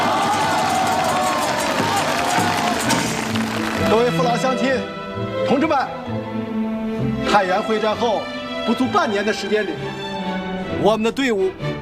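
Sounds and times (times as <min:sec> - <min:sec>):
faint cheering voices: 0:00.0 - 0:04.2
crowd applauding warmly: 0:00.0 - 0:04.6
speech: 0:03.9 - 0:06.6, 0:07.3 - 0:10.0, 0:10.8 - 0:11.8.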